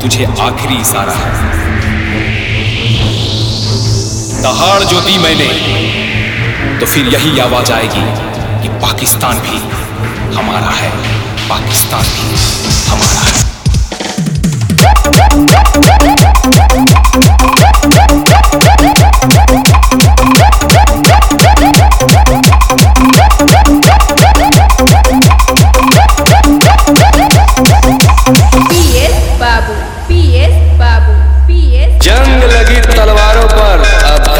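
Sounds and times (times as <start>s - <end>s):
nonstop DJ competition song: 0.1s - 31.0s, 31.9s - 34.3s
siren horn: 14.8s - 30.1s.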